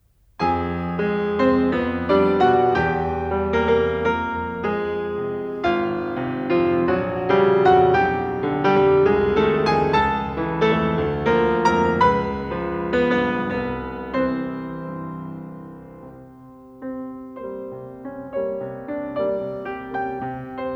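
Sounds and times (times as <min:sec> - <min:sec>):
piano piece: 0:00.0 - 0:20.7.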